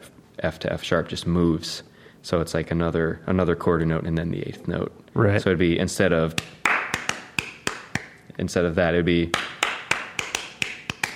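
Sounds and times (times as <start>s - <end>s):
speech: 0.4s - 6.6s, 8.4s - 9.5s
hand claps in a syncopated rhythm: 6.3s - 8.2s, 9.3s - 11.1s.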